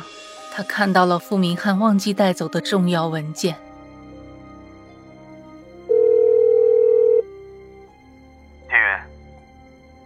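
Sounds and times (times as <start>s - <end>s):
speech: 0.6s - 3.6s
telephone tone after hanging up: 5.9s - 7.3s.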